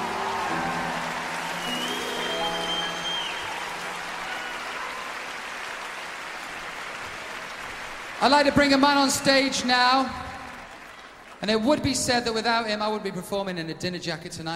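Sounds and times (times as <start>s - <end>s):
audience applause: 0.0s - 11.8s
speech: 8.2s - 10.2s, 11.4s - 14.5s.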